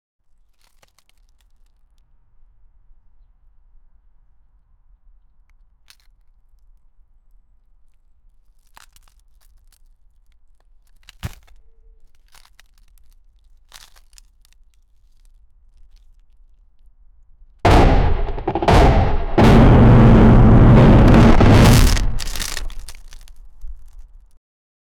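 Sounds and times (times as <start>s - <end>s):
building destroyed by a natural disaster: 17.7s - 24.0s.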